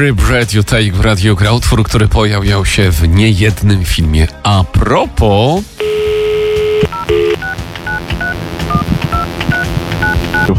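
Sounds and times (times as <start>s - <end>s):
speech: 0.0s - 6.0s
telephone dial tone in a radio studio: 5.8s - 10.5s.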